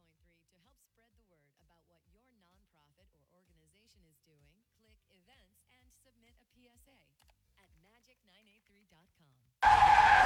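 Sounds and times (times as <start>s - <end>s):
car tires screeching in a skid as a car-crash sound effect: 9.6s - 10.2s.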